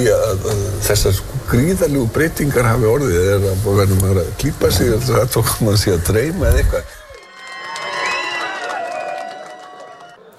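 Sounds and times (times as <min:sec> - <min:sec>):
speech: 0:00.0 - 0:07.0
crowd cheering and shouting at an election night party at Glerártorg: 0:07.0 - 0:10.3.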